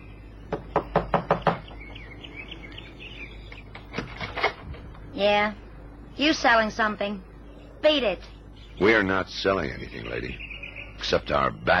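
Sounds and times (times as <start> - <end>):
faint bird chirping: 0.0 - 11.7
knocking on a door: 0.5 - 2.0
speech: 5.2 - 5.6, 6.2 - 11.7.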